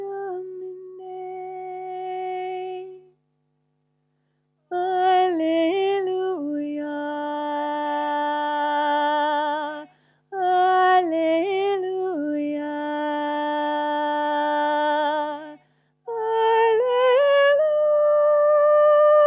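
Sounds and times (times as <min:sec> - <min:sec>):
soprano singing: 0:00.0 - 0:03.1, 0:04.7 - 0:19.2.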